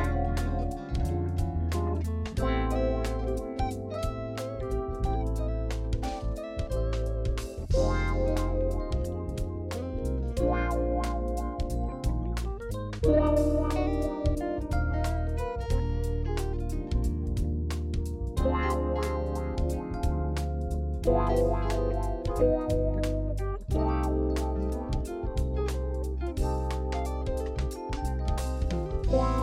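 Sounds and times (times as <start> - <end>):
wah guitar playing slow triplets for smooth jazz: 0.0 - 29.4.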